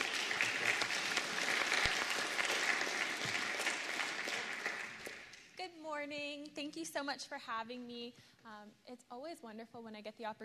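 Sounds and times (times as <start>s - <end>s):
church congregation applause welcoming a speaker on a Missions Sunday: 0.0s - 5.6s
speech: 6.0s - 10.4s.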